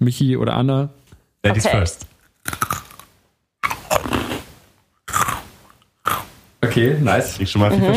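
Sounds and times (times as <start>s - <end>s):
speech: 0.0s - 2.6s, 6.6s - 7.9s
crunchy snack being bitten and chewed: 2.2s - 4.4s, 5.1s - 6.3s.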